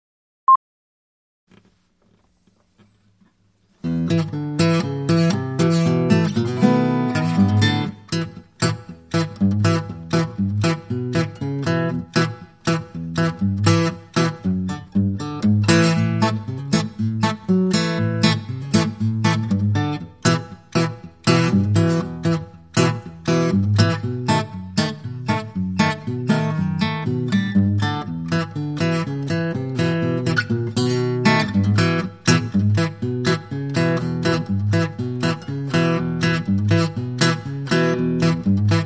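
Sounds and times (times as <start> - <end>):
Delta blues duet: 3.9 - 38.8.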